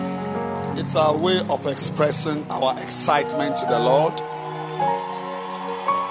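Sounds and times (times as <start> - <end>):
speech: 0.8 - 5.0
audience clapping: 2.6 - 6.0.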